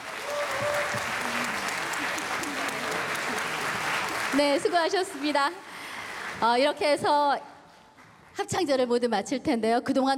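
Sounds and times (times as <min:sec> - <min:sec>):
faint murmuring voices and cheers: 0:00.0 - 0:04.7
audience applause: 0:00.0 - 0:06.8
speech: 0:04.4 - 0:05.7, 0:06.4 - 0:07.5, 0:08.4 - 0:10.1.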